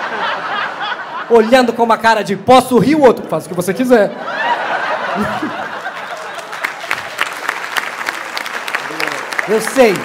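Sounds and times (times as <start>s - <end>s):
laughter: 0.0s - 1.8s, 4.0s - 7.4s
speech: 1.3s - 4.3s, 5.2s - 5.6s, 9.5s - 10.0s
audience applause: 5.2s - 10.0s.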